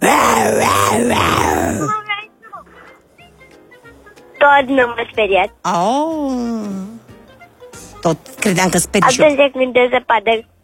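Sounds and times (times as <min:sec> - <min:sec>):
person growling and roaring like an angry lion: 0:00.0 - 0:02.0
speech: 0:04.5 - 0:06.9, 0:08.0 - 0:10.6.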